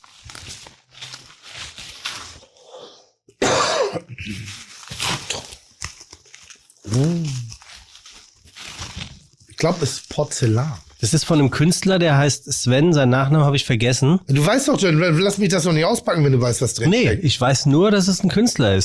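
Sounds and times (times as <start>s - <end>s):
bubble wrap crinkling as a parcel is unpacked: 0.0s - 2.9s, 4.2s - 11.9s
person coughing: 3.4s - 4.6s
speech: 4.3s - 4.6s, 6.9s - 7.4s, 9.6s - 18.8s.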